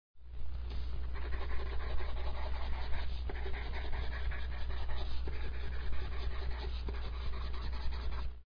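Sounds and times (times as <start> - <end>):
pencil writing slowly: 1.0 - 8.4.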